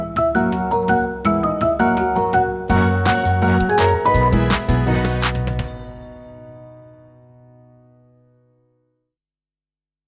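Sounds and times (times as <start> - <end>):
bright background music: 0.0 - 6.8.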